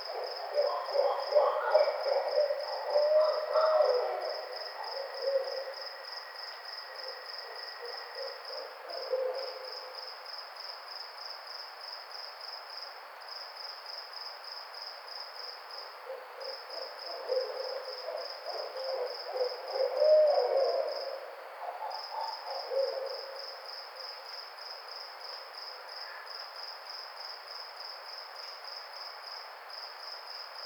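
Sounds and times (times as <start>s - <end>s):
barred owl loud uneven hoots and cackling notes: 0.1s - 5.8s, 7.1s - 9.7s, 16.1s - 23.4s.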